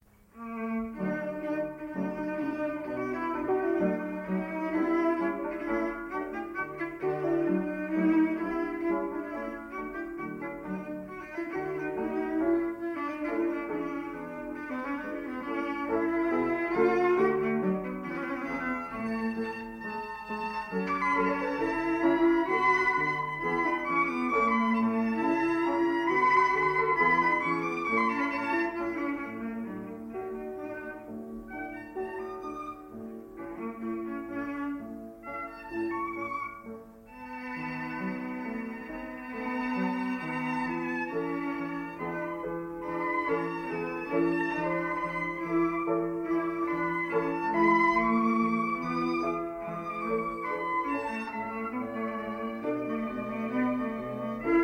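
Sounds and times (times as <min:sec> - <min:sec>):
musical trio: 0:00.0 - 0:54.6.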